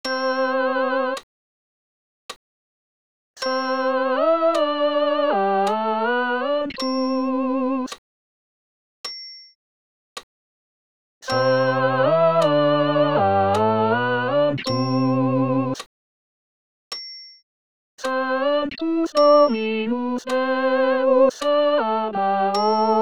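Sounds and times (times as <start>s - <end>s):
all voices singing a Sanctus: 0.4s - 1.2s, 3.8s - 7.9s, 11.3s - 15.8s, 18.1s - 22.9s.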